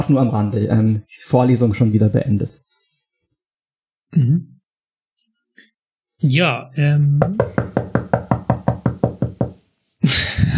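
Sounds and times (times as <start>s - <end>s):
speech: 0.0s - 2.7s, 4.1s - 4.5s, 6.2s - 8.3s, 10.0s - 10.5s
knuckles knocking on table as applause: 7.2s - 9.6s.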